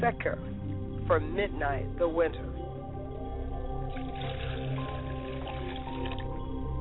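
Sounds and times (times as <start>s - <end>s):
speech: 0.0s - 2.6s
liquid libation pouring: 3.9s - 6.7s.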